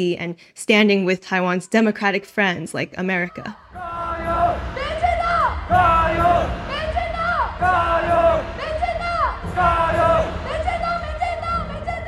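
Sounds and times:
speech: 0:00.0 - 0:04.7
crowd chanting Chinese cheering phrase: 0:03.6 - 0:12.0.

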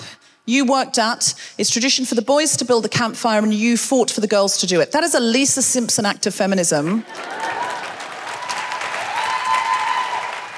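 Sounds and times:
speech: 0:00.5 - 0:07.6
audience applause: 0:07.0 - 0:10.5.

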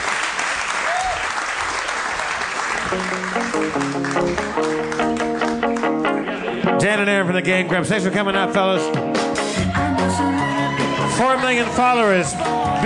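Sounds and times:
live show audience applause for the Game Grumps: 0:00.0 - 0:06.6, 0:09.8 - 0:12.8
speech: 0:02.9 - 0:03.4, 0:06.8 - 0:09.2, 0:10.0 - 0:10.5, 0:11.1 - 0:12.8.

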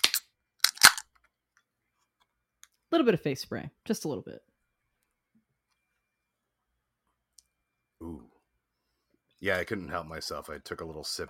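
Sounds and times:
drink can cracked open: 0:00.0 - 0:01.1
speech: 0:02.9 - 0:04.5, 0:09.4 - 0:11.2.

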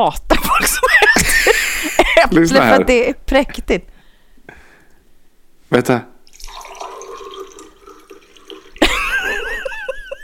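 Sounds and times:
speech: 0:00.0 - 0:01.3, 0:02.3 - 0:03.9, 0:05.7 - 0:06.1
laughter: 0:00.5 - 0:02.3, 0:08.8 - 0:10.2
coffee being poured into cup: 0:06.2 - 0:08.9.

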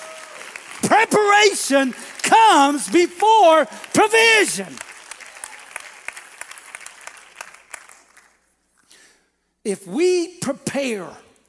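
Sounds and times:
audience clapping hands: 0:00.0 - 0:08.6
speech: 0:00.8 - 0:04.9, 0:09.6 - 0:11.2.

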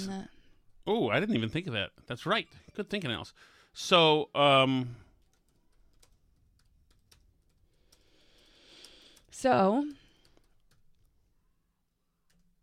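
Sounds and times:
speech: 0:00.0 - 0:05.0, 0:09.4 - 0:10.0
typing an email on a computer keyboard: 0:05.1 - 0:11.2.

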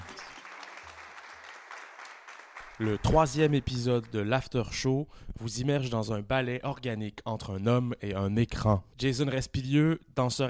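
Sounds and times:
crowd applause: 0:00.0 - 0:04.1
speech: 0:02.8 - 0:10.4.

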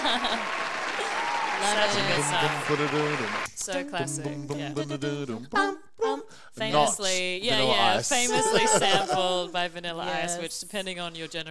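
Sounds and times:
laughter: 0:00.0 - 0:03.4, 0:07.6 - 0:09.5
hand clapping: 0:00.0 - 0:04.8
speech: 0:01.6 - 0:11.5.

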